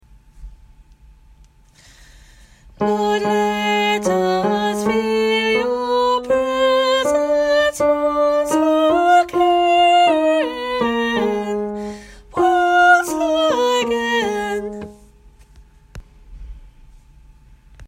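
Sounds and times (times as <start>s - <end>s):
tenor singing: 2.8s - 15.0s.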